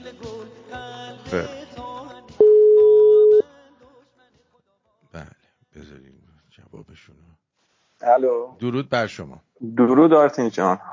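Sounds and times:
speech: 1.3 - 1.6, 8.0 - 10.9
phone line beep as a caller calls in: 2.4 - 3.4.

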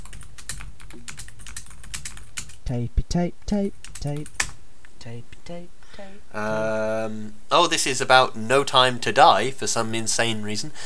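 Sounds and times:
typing on a computer keyboard during a Google search: 0.0 - 2.6, 3.8 - 4.6
speech: 2.7 - 4.4, 5.0 - 10.8.

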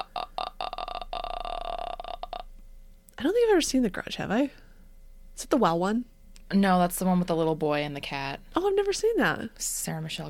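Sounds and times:
imitated guttural throat croak from horror film: 0.0 - 2.6
speech: 3.2 - 4.6, 5.4 - 10.2.

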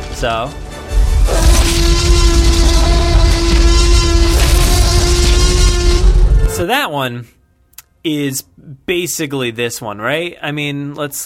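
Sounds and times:
speech: 0.2 - 0.7, 6.6 - 7.4, 8.0 - 11.2
T-Rex roar movie sound effect: 1.2 - 6.7.

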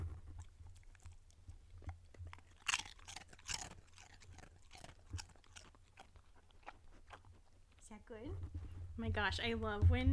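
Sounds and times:
dog crunching and chewing chips: 0.0 - 8.3
speech: 8.1 - 10.1.

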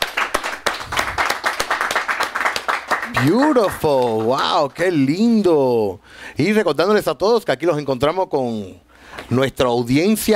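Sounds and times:
audience applause: 0.0 - 4.7
speech: 3.1 - 10.3.

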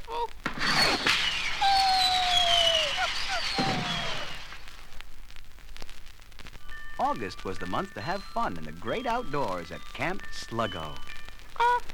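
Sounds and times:
faint pops: 0.0 - 6.8
bottle rocket launched at home on Independence Day: 0.6 - 4.6
speech: 7.1 - 11.1.

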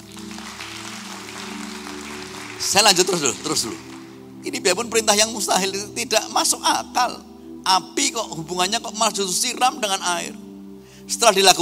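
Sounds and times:
crowd clapping: 0.0 - 4.2
speech: 2.6 - 10.4, 11.1 - 11.5.

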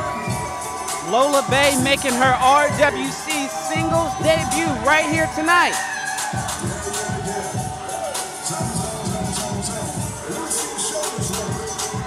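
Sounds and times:
crowd cheering ovation: 0.0 - 12.0
speech: 1.1 - 5.9.

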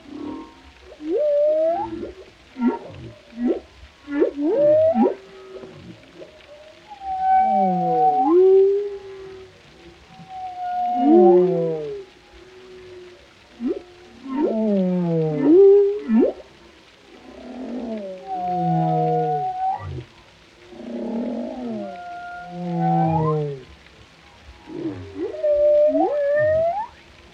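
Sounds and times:
whale calls: 0.0 - 27.3.

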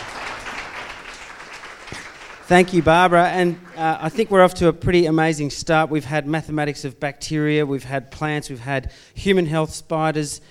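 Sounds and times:
crowd applauding: 0.0 - 4.6
speech: 1.9 - 10.5.

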